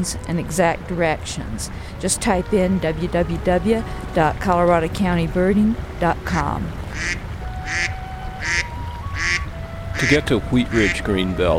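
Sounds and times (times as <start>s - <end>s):
speech: 0.0s - 8.0s, 10.0s - 11.5s
waterfowl quacking: 6.8s - 11.4s.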